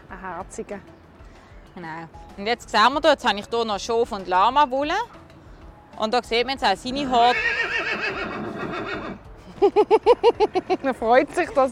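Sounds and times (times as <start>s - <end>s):
speech: 0.2s - 1.0s, 1.8s - 5.2s, 6.0s - 7.7s, 9.6s - 11.7s
Welsh pony whinnying at a children's zoo: 7.2s - 9.2s
laughter: 9.4s - 11.1s.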